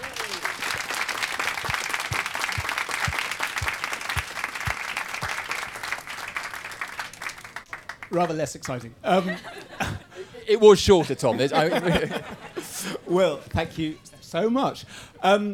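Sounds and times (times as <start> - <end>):
audience applause: 0.0 - 8.4
speech: 8.1 - 15.5
laughter: 9.0 - 13.8.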